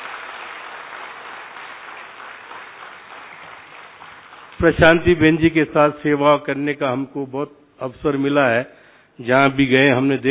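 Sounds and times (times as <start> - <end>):
audience applause after a poetry recitation: 0.0 - 4.7
speech: 4.6 - 10.3.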